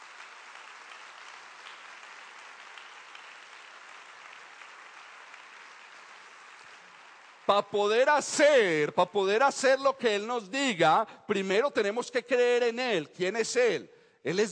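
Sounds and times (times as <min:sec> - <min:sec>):
audience applauding: 0:00.0 - 0:08.3
speech: 0:07.5 - 0:14.5.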